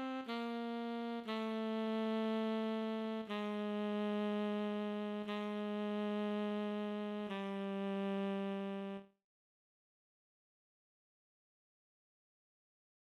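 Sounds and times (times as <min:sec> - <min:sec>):
tenor sax chorale and recessional: 0:00.0 - 0:09.1.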